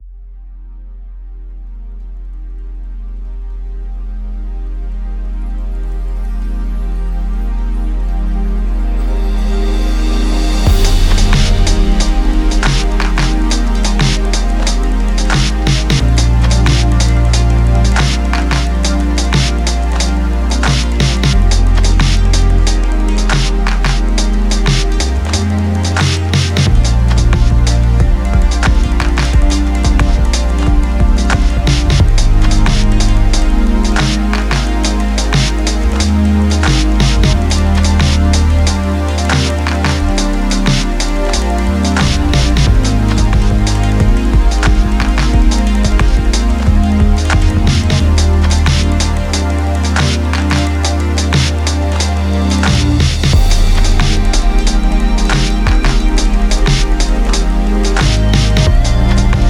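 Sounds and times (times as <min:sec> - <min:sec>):
warm lounge music: 0:00.5 - 0:59.4.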